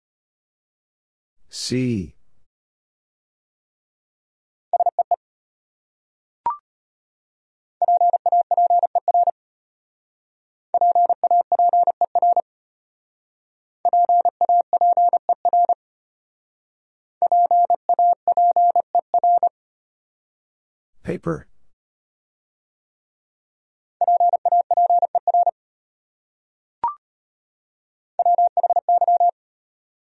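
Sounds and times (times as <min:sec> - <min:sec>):
speech: 0:01.5 - 0:02.2, 0:21.1 - 0:21.5
Morse code beeps sending words: 0:07.8 - 0:09.3, 0:10.8 - 0:12.4, 0:13.9 - 0:15.8, 0:17.2 - 0:19.5, 0:24.0 - 0:25.5, 0:28.2 - 0:29.3.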